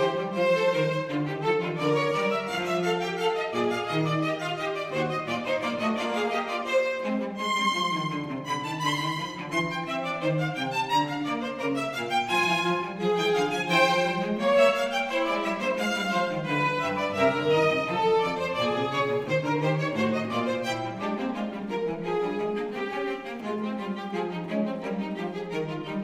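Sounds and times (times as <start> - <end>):
canonic fugue: 0.0 - 26.0.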